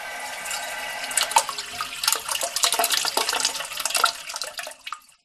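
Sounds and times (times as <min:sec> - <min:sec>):
modern household toilet flush: 0:00.1 - 0:05.2.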